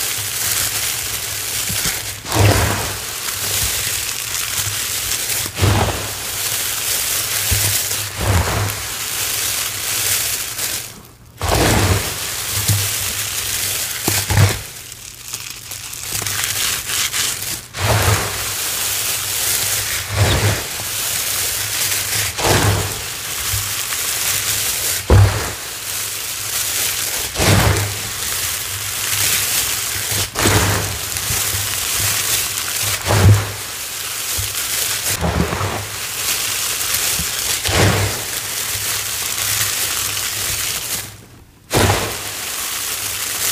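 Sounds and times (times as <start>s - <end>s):
confetti crushing and crumpling: 0.0s - 43.5s.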